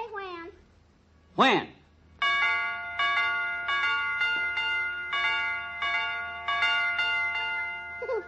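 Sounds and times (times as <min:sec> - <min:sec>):
speech: 0:01.4 - 0:01.8
doorbell ringing chime: 0:02.2 - 0:08.2.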